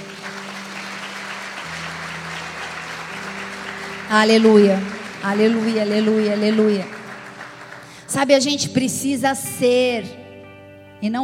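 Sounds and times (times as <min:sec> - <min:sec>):
audience applause: 0:00.0 - 0:08.1
speech: 0:04.1 - 0:07.0, 0:08.1 - 0:10.2, 0:11.0 - 0:11.2.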